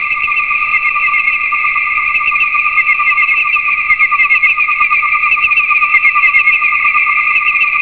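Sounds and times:
crickets chirping: 0:00.0 - 0:07.8.

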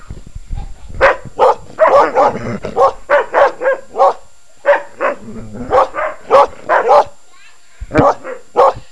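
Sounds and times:
low rumbling background noise: 0:00.0 - 0:08.8
dog barking in short sharp yaps: 0:01.0 - 0:05.0, 0:05.7 - 0:07.1, 0:08.0 - 0:08.8.

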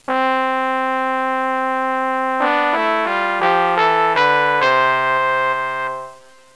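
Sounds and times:
trumpet: 0:00.0 - 0:06.5.

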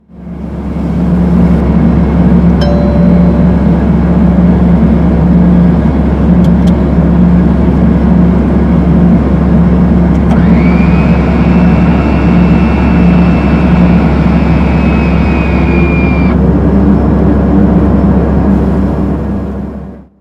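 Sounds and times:
jet engine test: 0:00.0 - 0:02.6, 0:03.5 - 0:20.2.

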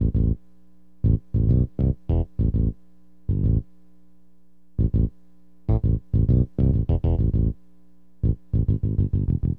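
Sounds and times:
acid jazz funk bass: 0:00.0 - 0:00.4, 0:01.0 - 0:03.7, 0:04.8 - 0:07.6, 0:08.2 - 0:09.5.

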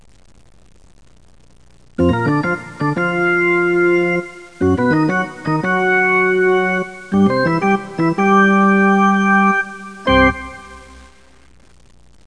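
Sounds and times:
organ: 0:02.0 - 0:11.2.

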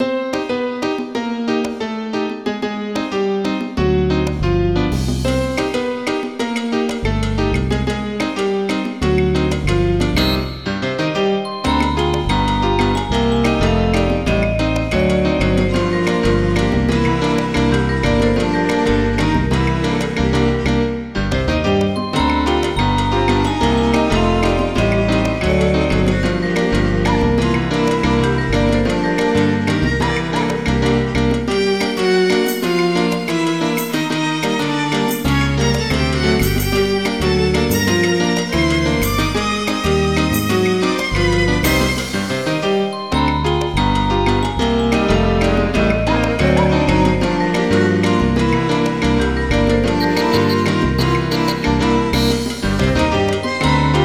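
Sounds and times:
salsa music: 0:00.0 - 0:54.0.

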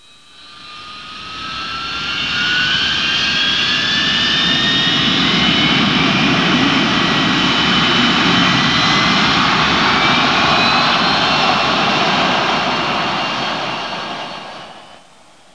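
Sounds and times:
jet aircraft roar: 0:00.3 - 0:15.5.

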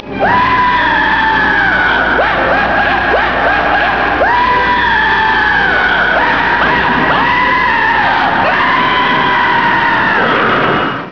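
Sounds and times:
laughter: 0:00.2 - 0:09.2
person screaming: 0:00.2 - 0:10.3.

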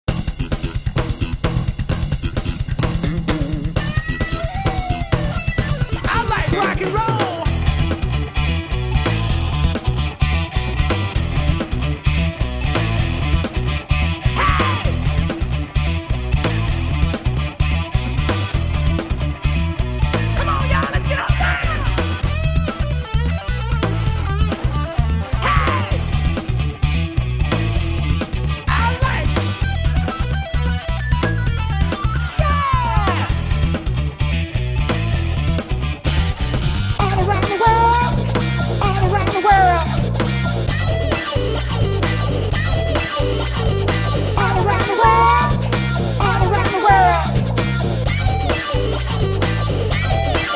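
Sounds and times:
mixture rock music: 0:00.0 - 0:50.5.

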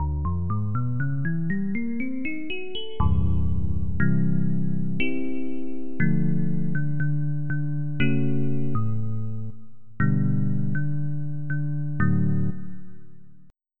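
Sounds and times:
electric piano combo soundfont: 0:00.0 - 0:13.2.

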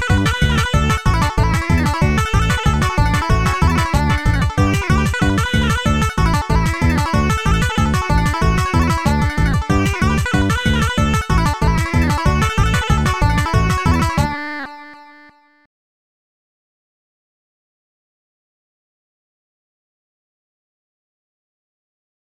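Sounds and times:
techno music: 0:00.0 - 0:14.4.

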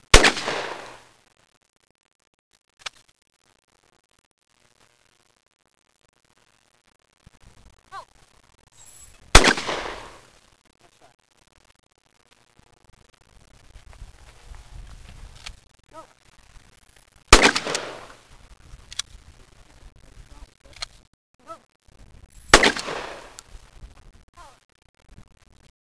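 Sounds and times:
shotgun: 0:00.1 - 0:01.0, 0:09.3 - 0:10.2, 0:17.3 - 0:18.2, 0:22.5 - 0:23.4.

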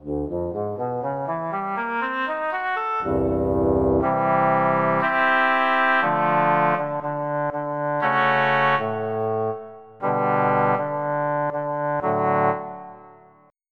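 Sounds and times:
oboe: 0:00.8 - 0:13.4.

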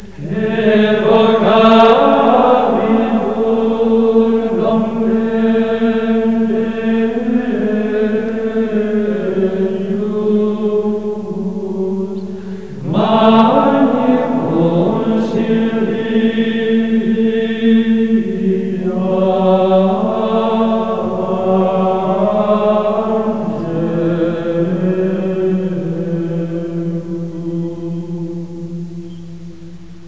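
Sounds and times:
chanting: 0:00.0 - 0:30.0.

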